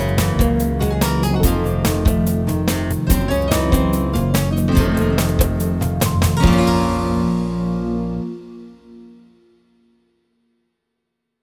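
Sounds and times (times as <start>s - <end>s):
tango flamenco music: 0.0s - 8.6s.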